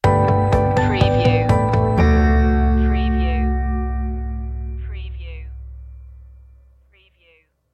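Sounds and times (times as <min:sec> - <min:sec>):
music stinger: 0:00.1 - 0:06.9.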